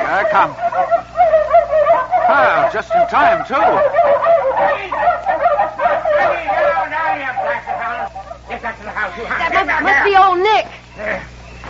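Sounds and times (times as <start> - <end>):
laughter: 0.0 - 10.2
pack of dogs barking and yelping excitedly: 0.0 - 11.6
speech: 0.1 - 1.1, 2.3 - 5.0, 8.7 - 11.3.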